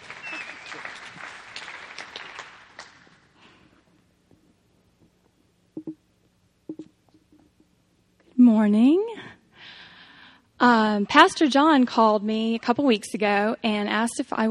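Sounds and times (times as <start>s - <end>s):
audience clapping: 0.0s - 3.4s
speech: 8.5s - 9.1s, 10.6s - 14.4s.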